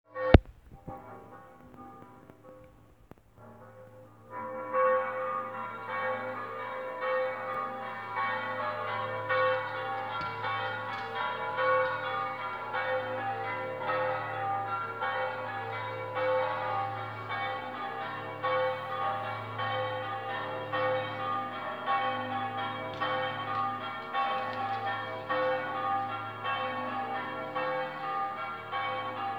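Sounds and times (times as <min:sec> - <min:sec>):
church bell: 0:00.1 - 0:29.3.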